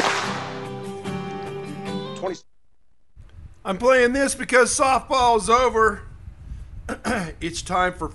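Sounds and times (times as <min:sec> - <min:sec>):
sharp hand claps: 0:00.0 - 0:00.7
speech: 0:02.2 - 0:02.5, 0:03.6 - 0:06.1, 0:07.0 - 0:08.1.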